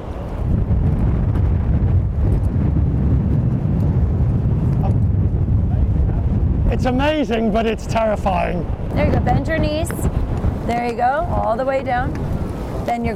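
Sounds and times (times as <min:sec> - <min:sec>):
wind buffeting a microphone: 0:00.0 - 0:13.1
speech: 0:06.8 - 0:13.1.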